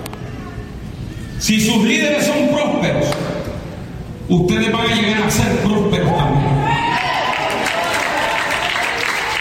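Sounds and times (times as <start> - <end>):
speech: 1.5 - 3.3, 4.3 - 6.6
audience cheering: 6.1 - 9.4
audience applause: 6.7 - 9.4.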